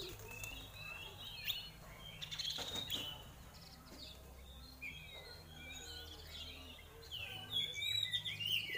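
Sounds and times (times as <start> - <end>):
female Oriental magpie-robin singing rapid whistled and chattering notes: 0.0 - 8.7.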